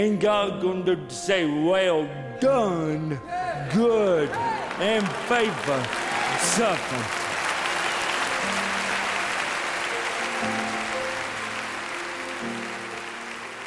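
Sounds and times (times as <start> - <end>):
speech: 0.0 - 7.2
thunderous audience applause: 4.2 - 13.6.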